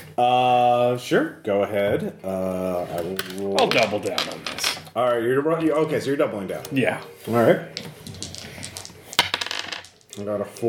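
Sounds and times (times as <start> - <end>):
speech: 0.2 - 8.0, 10.2 - 10.6
dice rolling: 3.0 - 5.0, 7.2 - 10.4.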